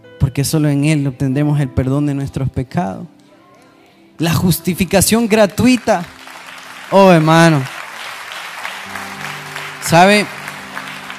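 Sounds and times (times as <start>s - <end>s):
speech: 0.4s - 3.2s, 4.2s - 6.2s, 6.9s - 7.7s, 9.9s - 10.4s
audience applause: 5.4s - 11.1s.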